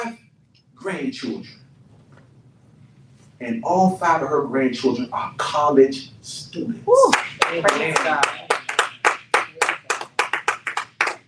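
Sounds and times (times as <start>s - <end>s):
speech: 0.8s - 1.6s, 3.4s - 8.5s
audience clapping: 7.1s - 11.2s.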